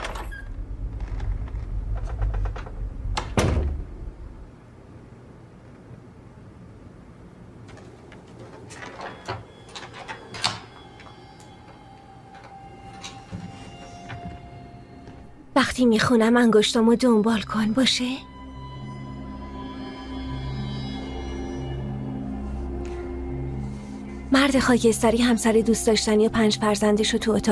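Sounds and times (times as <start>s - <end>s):
low hum: 0.0s - 27.5s
door thud: 3.2s - 4.0s
door lock clicking and rattling: 7.7s - 13.3s
speech: 15.7s - 18.3s, 24.5s - 27.5s.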